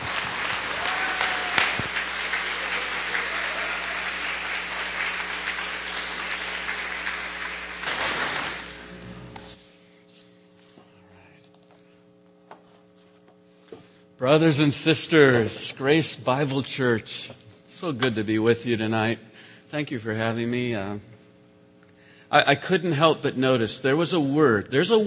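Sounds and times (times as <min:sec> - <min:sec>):
congregation applause at Grace Bible Church evening service: 0:00.0 - 0:08.9
low electrical hum: 0:00.0 - 0:25.0
speech: 0:14.2 - 0:21.1, 0:22.3 - 0:25.0.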